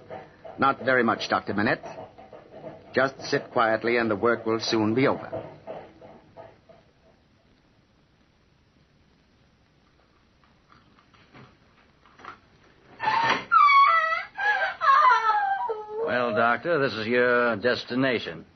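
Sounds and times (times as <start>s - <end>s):
speech: 0.6s - 2.0s, 2.9s - 5.6s, 16.6s - 18.5s
woman screaming: 13.0s - 16.5s.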